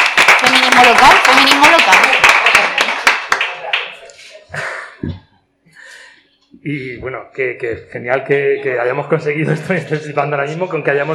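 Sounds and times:
hand clapping in tribute to a local activist: 0.0s - 4.2s
speech: 0.8s - 2.2s, 6.6s - 11.1s.

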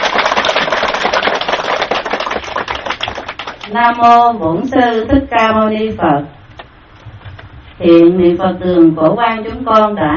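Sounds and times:
long loud audience applause: 0.0s - 3.7s
speech: 3.7s - 6.4s, 7.8s - 10.1s.

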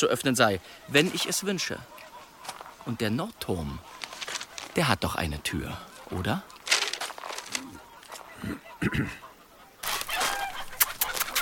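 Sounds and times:
speech: 0.0s - 4.0s, 4.8s - 6.6s, 8.4s - 9.2s
flock of chickens clucking while being fed: 0.0s - 11.3s.

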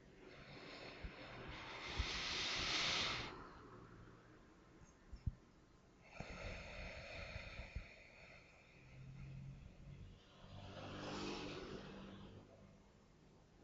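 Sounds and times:
deep guided breath: 0.0s - 4.2s, 6.0s - 12.6s.

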